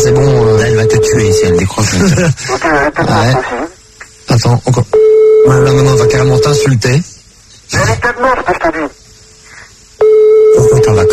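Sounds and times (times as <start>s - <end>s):
telephone ringing unanswered: 0.0s - 1.6s, 5.0s - 6.7s, 10.0s - 11.1s
speech: 1.2s - 3.7s, 4.3s - 9.0s, 10.6s - 11.1s.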